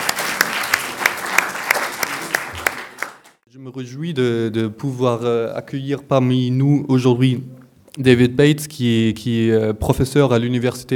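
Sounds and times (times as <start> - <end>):
audience applause: 0.0 - 3.4
speech: 3.6 - 10.9.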